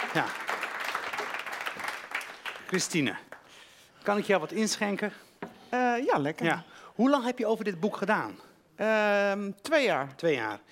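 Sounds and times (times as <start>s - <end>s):
room full of people clapping: 0.0s - 3.8s
speech: 0.1s - 0.4s, 2.7s - 3.3s, 4.0s - 10.7s.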